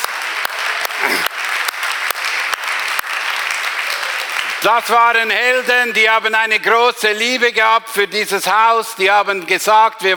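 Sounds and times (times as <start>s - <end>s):
audience applause: 0.0s - 6.0s
speech: 4.6s - 10.1s.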